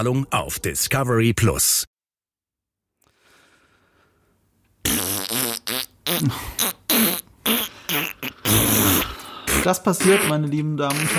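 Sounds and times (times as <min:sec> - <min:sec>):
speech: 0:00.0 - 0:01.9, 0:06.2 - 0:06.7, 0:09.6 - 0:11.1
buzzy fart sound effect: 0:04.8 - 0:11.1.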